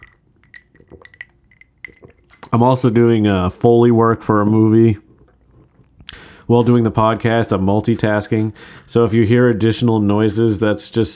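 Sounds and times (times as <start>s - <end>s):
ice cubes clinking in a glass: 0.0s - 2.4s
speech: 2.5s - 5.0s, 6.5s - 11.1s.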